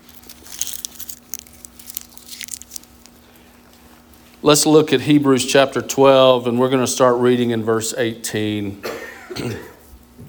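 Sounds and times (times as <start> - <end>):
speech: 4.4 - 9.7
cough drop being put in mouth: 8.8 - 9.8.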